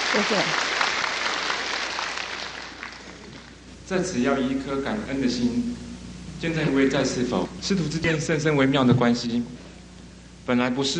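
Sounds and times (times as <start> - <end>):
dense crowd applause: 0.0 - 3.6
speech: 0.2 - 0.8, 3.9 - 9.6, 10.4 - 10.9.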